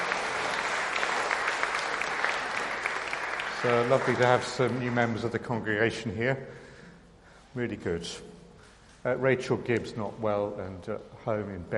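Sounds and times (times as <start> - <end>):
audience applause: 0.0 - 5.2
speech: 3.6 - 6.6, 7.6 - 8.3, 9.0 - 11.7.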